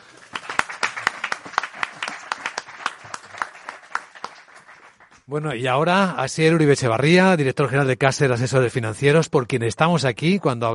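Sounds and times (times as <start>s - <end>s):
audience applause: 0.0s - 5.2s
speech: 5.3s - 10.7s.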